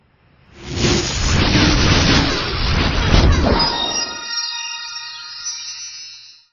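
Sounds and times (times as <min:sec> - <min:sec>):
freak lightning: 0:00.4 - 0:04.4.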